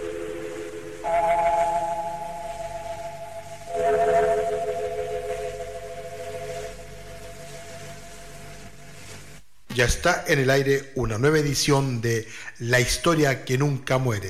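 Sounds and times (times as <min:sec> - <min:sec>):
gong stroke: 0:00.2 - 0:08.4
speech: 0:09.8 - 0:14.2.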